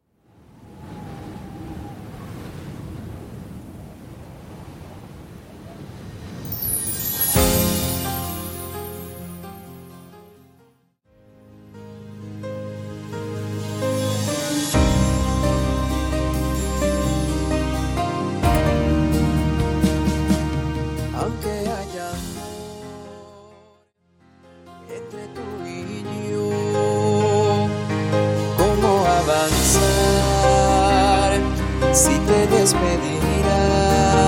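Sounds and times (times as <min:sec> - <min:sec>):
show opening ballad at 130 BPM: 0:06.5 - 0:10.7, 0:11.3 - 0:23.5, 0:24.3 - 0:34.2.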